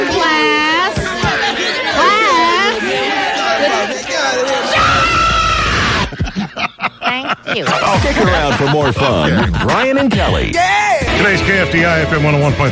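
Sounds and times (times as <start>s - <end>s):
noisy schoolchildren filing into class on the first day of school: 0.0s - 6.2s
laughter: 5.7s - 10.5s
speech: 7.6s - 12.6s.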